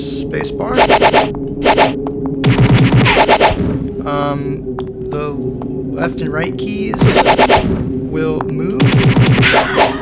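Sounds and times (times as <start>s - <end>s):
speech: 0.1s - 2.3s, 3.2s - 9.9s
video game person approaching: 1.2s - 3.0s, 3.6s - 5.8s, 6.4s - 8.6s.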